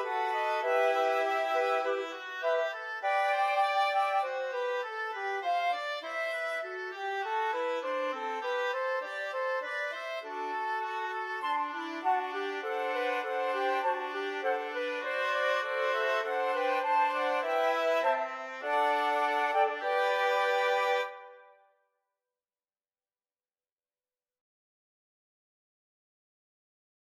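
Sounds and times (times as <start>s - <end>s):
gavotte: 0.0s - 21.6s.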